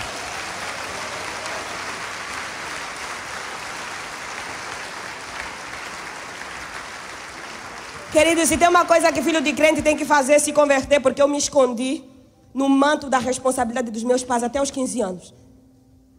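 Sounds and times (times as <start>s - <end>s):
audience applause: 0.0s - 10.0s
speech: 8.1s - 15.4s.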